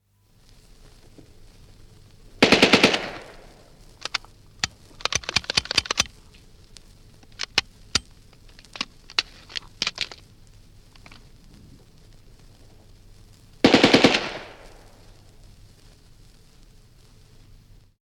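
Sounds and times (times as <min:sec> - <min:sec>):
Bren gun short bursts: 0:02.4 - 0:03.4, 0:05.0 - 0:06.1, 0:13.6 - 0:14.7
Bren gun jamming: 0:02.4 - 0:06.1, 0:07.3 - 0:10.2, 0:13.6 - 0:14.9.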